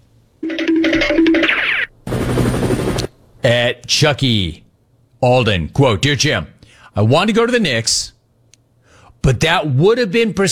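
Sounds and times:
helicopter flying away: 0.5s - 3.2s
speech: 4.0s - 4.6s, 5.2s - 8.2s, 9.2s - 10.5s.

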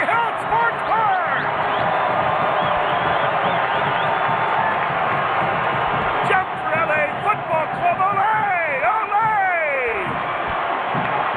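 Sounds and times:
stadium crowd cheering after goal: 0.0s - 11.3s
faint whistles: 2.6s - 4.3s.

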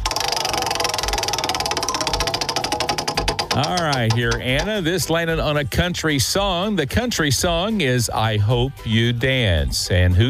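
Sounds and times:
prize wheel being spun for a country music trivia game: 0.0s - 5.4s
speech: 3.6s - 10.2s.

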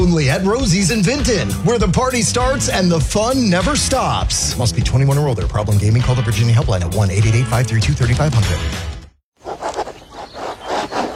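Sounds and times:
speech: 0.1s - 9.0s
antique fountain pen gliding across linen paper: 9.4s - 11.1s.

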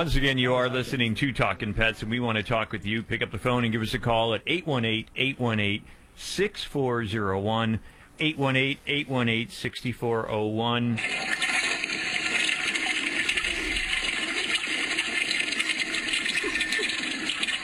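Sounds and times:
speech: 0.0s - 11.5s
toilet flushing with rushing water: 11.0s - 17.6s.

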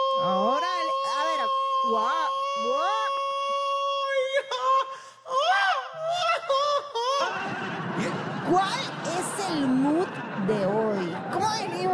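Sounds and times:
person screaming: 0.0s - 7.4s
laughter: 6.0s - 11.9s
speech: 10.4s - 10.8s.

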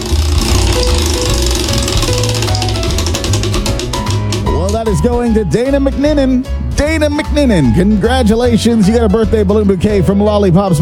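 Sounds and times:
prize wheel spinning and clicking: 0.0s - 5.2s
speech: 4.9s - 10.7s.

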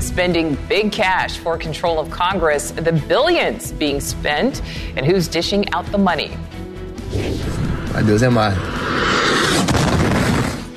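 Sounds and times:
speech: 0.2s - 9.5s
Russian missile striking an apartment building in Ukraine: 9.2s - 10.6s.

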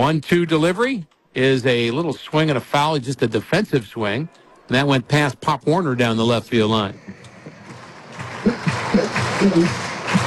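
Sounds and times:
speech: 0.0s - 7.2s, 9.4s - 9.9s
fans clapping at a ballpark: 7.0s - 10.2s.

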